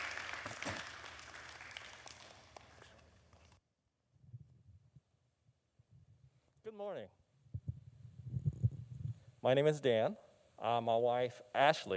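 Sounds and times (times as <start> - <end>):
audience applause: 0.0 - 3.5
speech: 6.8 - 7.2, 9.4 - 11.9.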